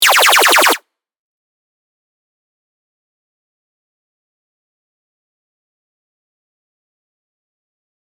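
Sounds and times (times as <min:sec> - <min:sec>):
laser shots: 0:00.0 - 0:00.8.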